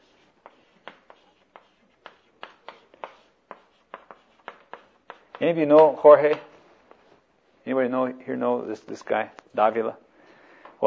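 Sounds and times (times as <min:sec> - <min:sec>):
pen writing a name down: 0:00.0 - 0:05.4
speech: 0:05.4 - 0:06.5, 0:07.7 - 0:10.0.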